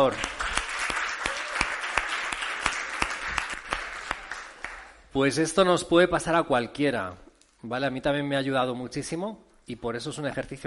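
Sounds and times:
speech: 0:00.0 - 0:00.3, 0:05.2 - 0:10.6
audience applause: 0:00.0 - 0:05.0.

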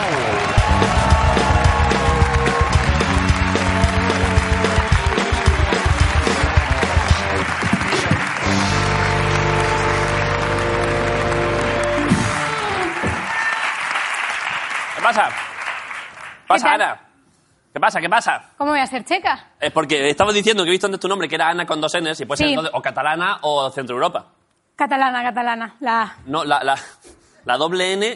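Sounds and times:
upbeat band music: 0:00.0 - 0:13.6
studio audience clapping and cheering: 0:00.0 - 0:16.9
speech: 0:16.5 - 0:17.1, 0:17.8 - 0:28.1.

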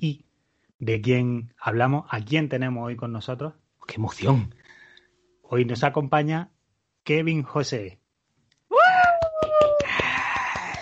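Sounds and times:
speech: 0:00.0 - 0:00.2, 0:00.8 - 0:04.6, 0:05.5 - 0:08.0
long wailing vocal cry: 0:08.7 - 0:10.8
loud cheering: 0:08.7 - 0:10.8
steady rhythmic hand clapping: 0:08.9 - 0:10.8.

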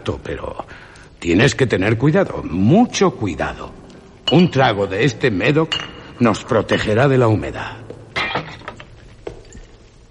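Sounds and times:
speech: 0:00.0 - 0:07.8
glass bottle neck being broken: 0:08.1 - 0:09.8.

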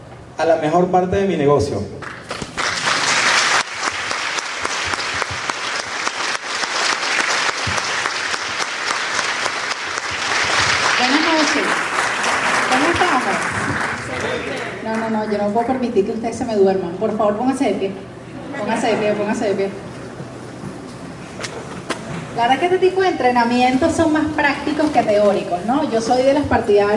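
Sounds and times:
speech: 0:00.4 - 0:02.1, 0:15.2 - 0:19.9, 0:22.4 - 0:26.9
audience applause: 0:02.0 - 0:14.8
people cheering: 0:02.7 - 0:14.8.

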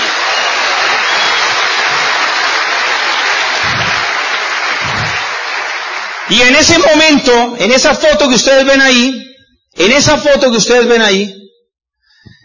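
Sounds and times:
audience applause: 0:00.0 - 0:07.0
speech: 0:06.3 - 0:11.4.

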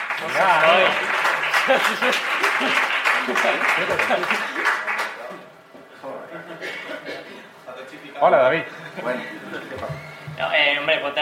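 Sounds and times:
audience applause: 0:00.0 - 0:05.3
laughter: 0:00.2 - 0:04.9, 0:08.7 - 0:10.2
speech: 0:00.2 - 0:05.0, 0:08.2 - 0:11.2.

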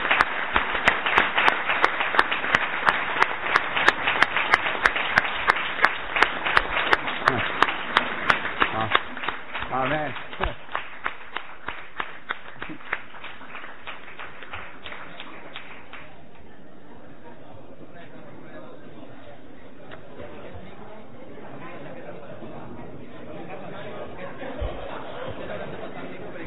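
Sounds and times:
audience applause for choir: 0:00.0 - 0:16.5
laughter: 0:07.1 - 0:07.7, 0:21.8 - 0:26.4.

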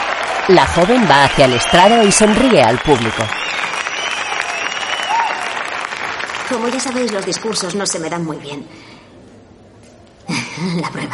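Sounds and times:
university audience applause for a student finalist walking to the stage: 0:00.0 - 0:07.7
speech: 0:00.5 - 0:03.6, 0:06.5 - 0:09.0, 0:10.6 - 0:11.1.

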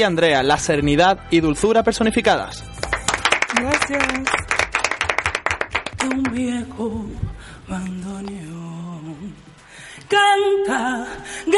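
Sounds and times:
speech: 0:00.0 - 0:02.9, 0:03.5 - 0:04.5, 0:06.0 - 0:09.5, 0:10.1 - 0:11.5
applause: 0:02.8 - 0:06.4.

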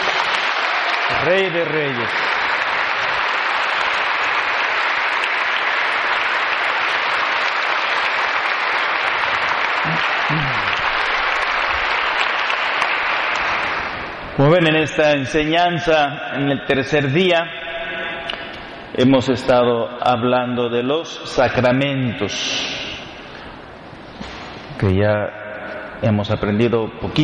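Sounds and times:
crowd applauding: 0:00.0 - 0:14.4
speech: 0:01.2 - 0:02.3, 0:14.4 - 0:17.6, 0:19.0 - 0:22.7, 0:24.8 - 0:25.4, 0:26.0 - 0:27.2
person calling out: 0:09.8 - 0:10.7.

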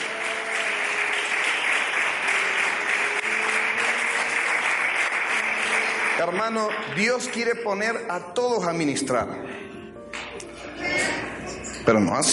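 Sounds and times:
loud applause: 0:00.0 - 0:07.7
speech: 0:06.2 - 0:09.6, 0:11.9 - 0:12.3.

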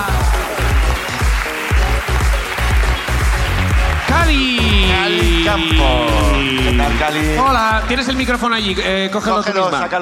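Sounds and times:
audience applause: 0:00.0 - 0:09.0
speech: 0:07.0 - 0:10.0.

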